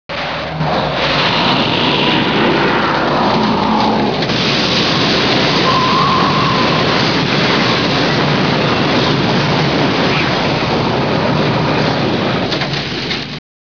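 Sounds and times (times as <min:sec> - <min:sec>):
tornado: 0:00.1 - 0:13.4.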